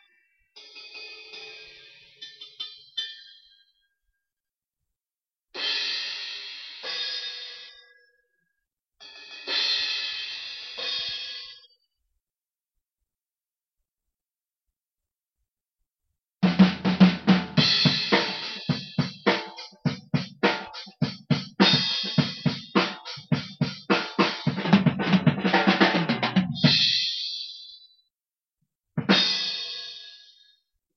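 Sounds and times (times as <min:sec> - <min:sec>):
drum kit: 0:05.6 - 0:07.8, 0:09.0 - 0:11.7, 0:16.4 - 0:27.9, 0:29.0 - 0:30.4.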